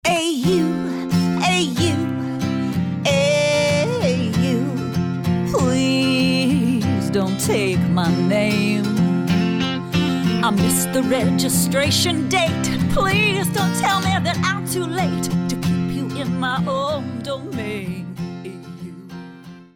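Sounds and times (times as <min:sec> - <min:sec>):
person singing: 0:00.0 - 0:19.3.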